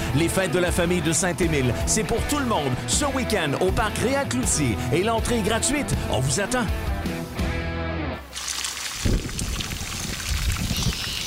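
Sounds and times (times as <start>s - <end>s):
speech: 0.1s - 7.2s
summer rain effect made with sizzling ground beef: 8.3s - 11.2s.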